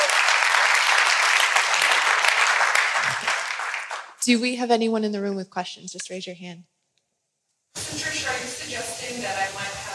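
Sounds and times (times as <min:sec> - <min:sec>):
round of applause: 0:00.0 - 0:04.2
speech: 0:04.2 - 0:06.7.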